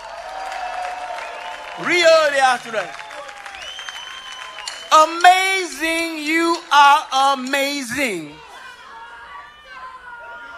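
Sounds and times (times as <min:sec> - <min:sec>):
crowd applauding: 0:00.0 - 0:08.4
speech: 0:01.8 - 0:03.0, 0:04.9 - 0:08.4
person speaking and shouting: 0:04.9 - 0:08.4.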